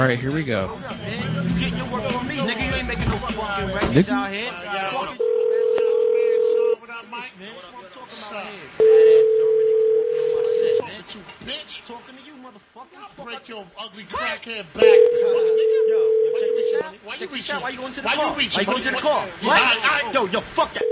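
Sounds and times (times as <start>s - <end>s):
speech: 0.0s - 5.4s, 7.0s - 9.7s, 11.0s - 20.8s
telephone line tones as a call is placed: 5.2s - 6.8s, 8.8s - 10.8s, 14.8s - 16.8s.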